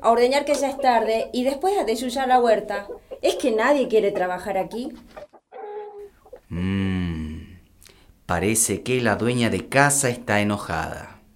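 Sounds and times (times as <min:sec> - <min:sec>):
speech: 0:00.0 - 0:05.3, 0:08.3 - 0:11.1
hens clucking while being fed on a farm: 0:00.0 - 0:06.5.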